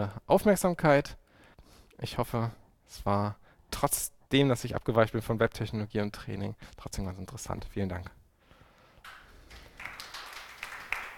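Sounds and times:
speech: 0:00.0 - 0:01.2, 0:02.0 - 0:08.2
faint applause from an audience: 0:09.1 - 0:11.1.

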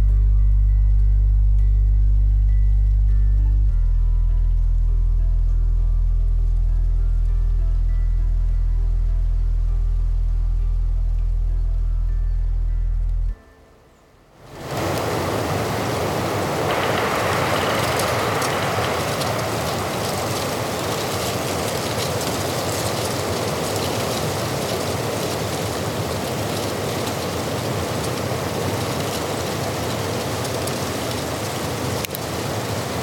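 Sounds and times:
deep wind rumble on the Hochgern: 0:00.0 - 0:13.4, 0:14.5 - 0:29.7
rain and gusts on the Hochgern: 0:14.3 - 0:33.0.

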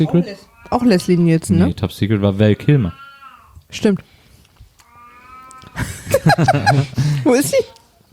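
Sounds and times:
speech: 0:00.0 - 0:03.0, 0:03.7 - 0:04.1, 0:05.8 - 0:07.8
cat yowling: 0:00.2 - 0:01.7, 0:02.6 - 0:03.6, 0:04.8 - 0:05.8
laughter: 0:05.8 - 0:07.4.

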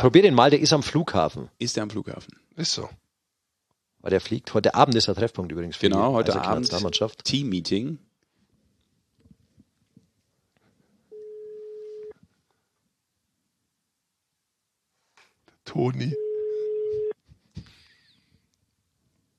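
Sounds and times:
speech: 0:00.0 - 0:03.0, 0:04.0 - 0:08.1, 0:15.7 - 0:16.2
phone ringing tone during outgoing call: 0:11.1 - 0:12.2, 0:16.1 - 0:17.2.

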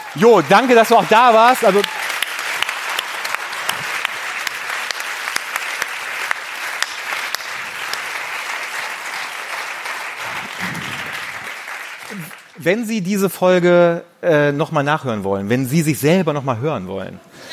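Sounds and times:
audience applause: 0:00.0 - 0:12.6
speech: 0:00.2 - 0:02.0, 0:12.6 - 0:17.5.

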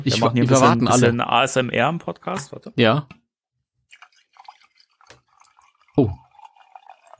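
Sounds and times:
speech: 0:00.0 - 0:03.2, 0:06.0 - 0:06.2
hot coffee being poured: 0:03.9 - 0:07.1.

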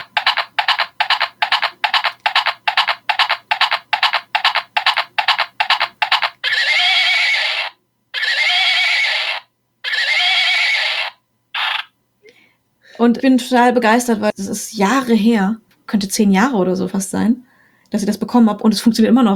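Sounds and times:
electronic clopping hoofbeats from a pink hobby-horse unicorn toy: 0:00.0 - 0:06.5
electronic whinnies from a pink hobby-horse unicorn toy: 0:00.0 - 0:11.9
speech: 0:13.0 - 0:19.3.

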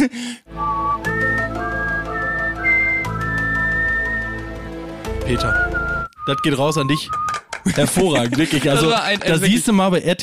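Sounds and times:
speech: 0:00.0 - 0:00.7, 0:05.3 - 0:05.7, 0:06.3 - 0:10.2
person whistling eerie TV theme melody: 0:00.5 - 0:04.7, 0:05.3 - 0:07.6
laughter: 0:07.6 - 0:09.7.

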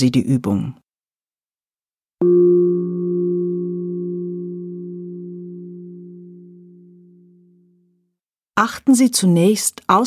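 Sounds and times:
speech: 0:00.0 - 0:00.8, 0:02.2 - 0:02.9, 0:08.6 - 0:10.0
singing bowl gong struck: 0:02.2 - 0:07.7.

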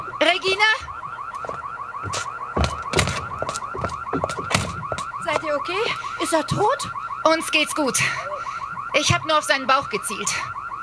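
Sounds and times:
electronic alarm warbling: 0:00.0 - 0:10.8
sharp thuds and knocks: 0:01.4 - 0:05.5
speech: 0:05.7 - 0:08.3, 0:09.0 - 0:10.5.

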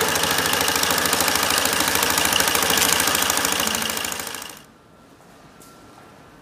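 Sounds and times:
machine running with a full roll of material fed through: 0:00.0 - 0:04.7.

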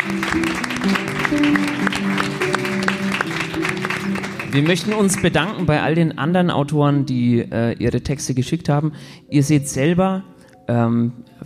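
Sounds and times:
speech: 0:00.0 - 0:01.0, 0:04.6 - 0:11.4
audience applause: 0:00.0 - 0:05.7.

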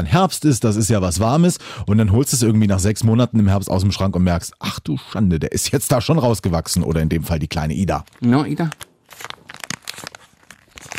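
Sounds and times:
speech: 0:00.0 - 0:09.3
plastic wrapper crinkling: 0:07.8 - 0:10.9.

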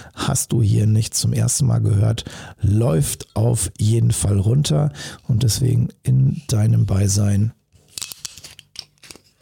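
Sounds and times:
speech: 0:00.3 - 0:07.6
wine bottle screw cap opening: 0:07.9 - 0:09.4.

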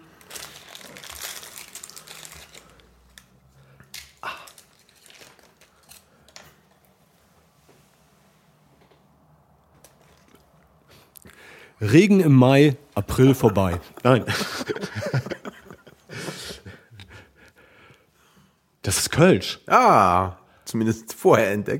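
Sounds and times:
fortune cookie plastic wrapper being torn and crumpled: 0:00.0 - 0:06.8
speech: 0:11.8 - 0:14.9, 0:19.2 - 0:21.7
laughter: 0:13.4 - 0:17.2.

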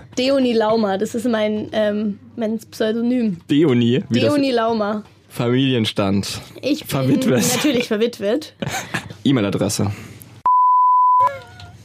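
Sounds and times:
speech: 0:00.2 - 0:10.1
laughter: 0:08.6 - 0:09.2
censor beep: 0:10.4 - 0:11.3.

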